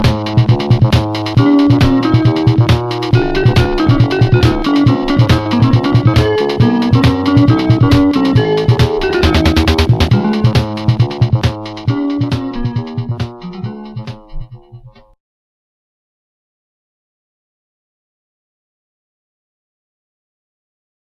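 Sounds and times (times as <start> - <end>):
marimba: 0.0 - 14.4.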